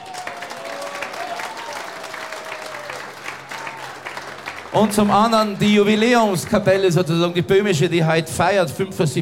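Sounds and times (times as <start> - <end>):
audience applause: 0.0 - 7.0
speech: 4.7 - 9.2.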